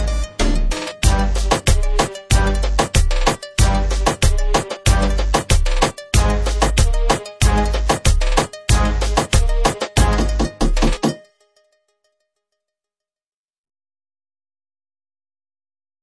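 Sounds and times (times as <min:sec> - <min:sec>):
reggaeton beat: 0:00.0 - 0:11.3.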